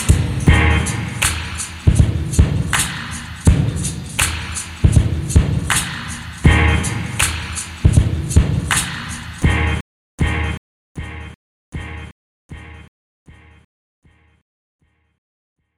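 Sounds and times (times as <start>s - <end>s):
drum beats and breaks: 0.0s - 10.5s.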